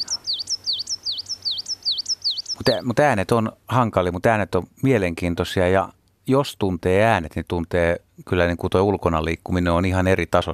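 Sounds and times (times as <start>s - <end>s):
bird whistling repeated phrase: 0.0s - 2.8s
faint low hum: 0.0s - 10.5s
speech: 2.6s - 10.5s.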